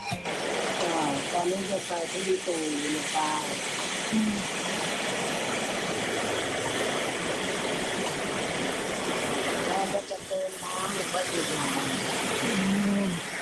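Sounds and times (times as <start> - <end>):
water pouring into a cooking pot of catfish: 0.2 - 13.4
speech: 2.1 - 4.5.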